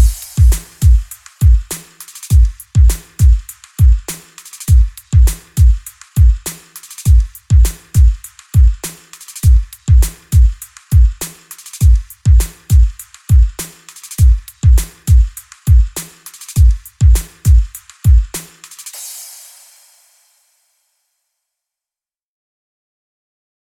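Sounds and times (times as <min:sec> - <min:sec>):
bass-boosted trap and bass music: 0:00.0 - 0:18.4.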